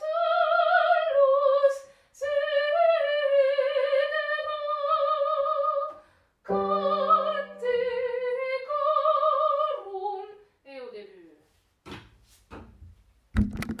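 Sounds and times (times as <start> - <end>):
soprano singing: 0.0 - 10.4.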